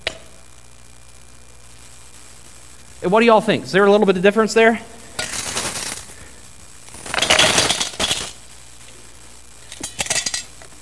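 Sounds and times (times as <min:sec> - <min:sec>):
speech: 0:03.0 - 0:04.9
coins dropping into a collection: 0:05.0 - 0:08.4, 0:09.7 - 0:10.5.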